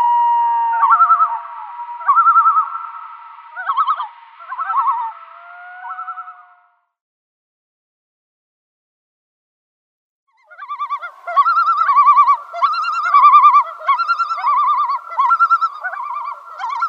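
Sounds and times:
great northern diver tremolo call: 0.0s - 6.8s, 10.4s - 16.8s.

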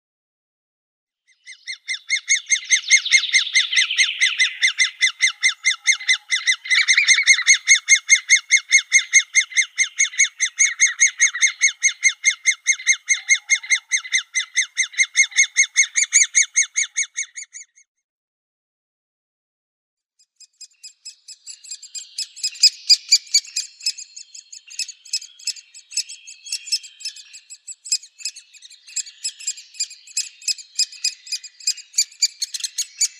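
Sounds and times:
great spotted woodpecker nestlings ticking and chattering: 1.5s - 17.8s, 20.6s - 33.1s.

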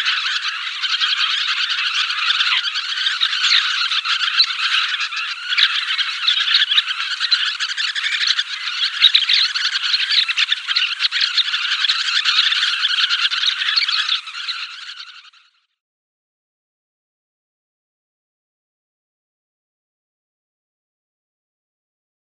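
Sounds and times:
sanderling calls: 0.0s - 15.1s.

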